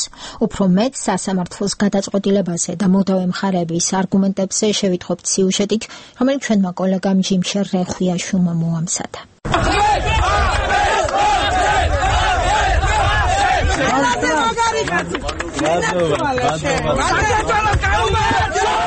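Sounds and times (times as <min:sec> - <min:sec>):
speech: 0:00.4 - 0:12.0, 0:14.9 - 0:18.8
supporters shouting, chanting and cheering in a courthouse yard: 0:09.5 - 0:18.8.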